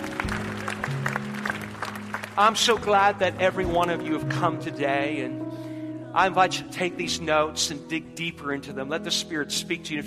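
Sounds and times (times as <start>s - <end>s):
crowd clapping in praise: 0.0s - 4.0s
speech: 2.4s - 5.4s, 6.1s - 10.0s.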